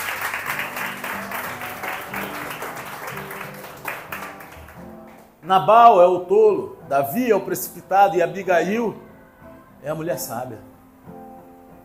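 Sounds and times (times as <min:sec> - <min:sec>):
audience applauding: 0:00.0 - 0:05.4
speech: 0:05.5 - 0:09.0, 0:09.8 - 0:10.7.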